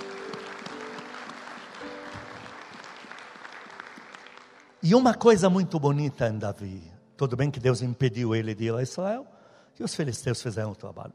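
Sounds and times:
audience applauding: 0.0 - 5.0
speech: 4.8 - 11.1.

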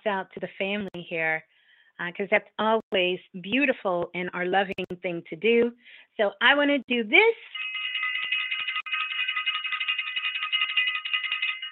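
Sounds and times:
speech: 0.0 - 7.7
bell ringing: 7.5 - 11.6.

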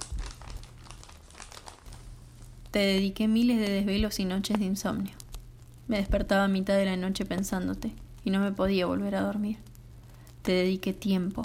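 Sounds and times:
dry paper of an old letter crinkling and rustling as it is unfolded: 0.0 - 2.8
low steady hum: 0.0 - 11.4
speech: 2.8 - 5.2, 5.9 - 9.7, 10.4 - 11.4.

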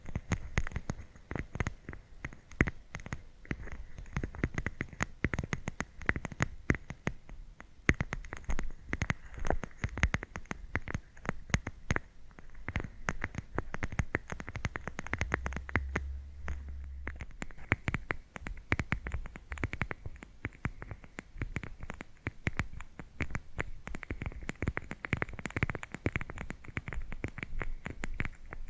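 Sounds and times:
scratching and tapping: 0.0 - 28.6
faint thin whine: 14.8 - 19.3
low hum: 14.8 - 19.3.

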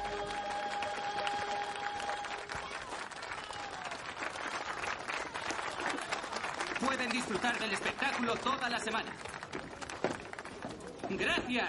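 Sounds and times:
circus audience applause: 0.0 - 11.0
speech: 7.1 - 9.4, 11.1 - 11.6.

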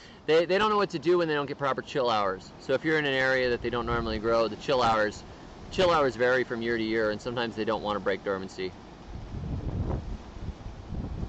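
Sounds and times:
speech: 0.3 - 8.8
strong wind on a ridgetop buffeting the microphone: 3.1 - 7.9, 8.7 - 11.2.

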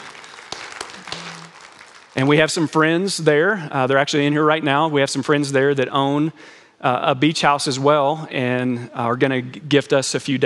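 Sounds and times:
audience clapping: 0.0 - 3.1
speech: 2.2 - 10.4.

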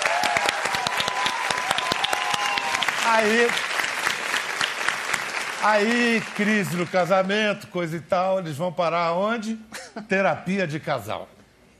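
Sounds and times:
audience applause: 0.0 - 7.3
speech: 3.1 - 3.7, 5.6 - 11.4.

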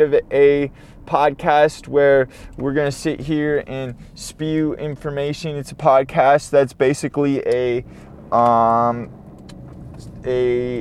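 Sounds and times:
speech: 0.0 - 9.2, 10.2 - 10.8
road noise inside a car being driven: 0.0 - 10.8.

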